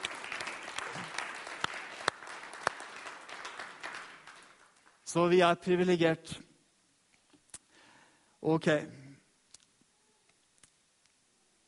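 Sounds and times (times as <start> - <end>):
audience applause: 0.0 - 5.0
speech: 5.1 - 6.5, 8.4 - 9.0.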